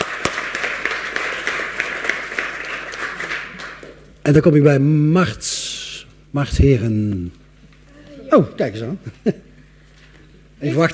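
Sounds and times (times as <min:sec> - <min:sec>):
crowd applauding: 0:00.0 - 0:04.1
speech: 0:04.2 - 0:05.6, 0:06.3 - 0:07.4, 0:08.3 - 0:09.5, 0:10.6 - 0:10.9.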